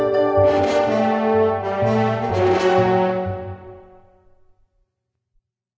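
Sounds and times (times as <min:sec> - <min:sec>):
match found game notification sound: 0:00.1 - 0:03.8.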